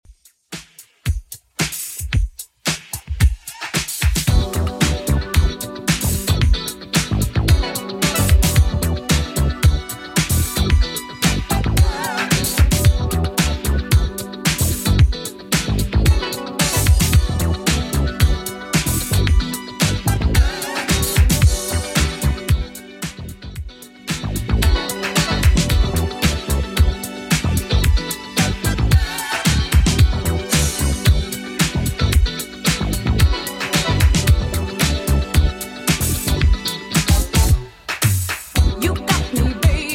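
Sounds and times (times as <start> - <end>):
1980s drum machine beat: 0.1 - 39.9.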